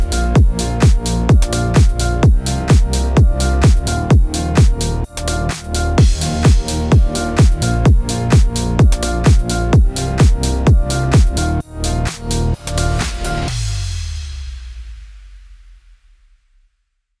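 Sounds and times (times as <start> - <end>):
electro house music bed in D sharp minor at 128 BPM: 0.0 - 13.6.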